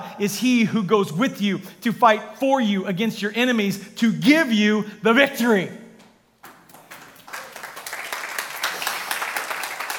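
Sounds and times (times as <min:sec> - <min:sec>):
speech: 0:00.2 - 0:05.8
crowd clapping: 0:06.4 - 0:09.9.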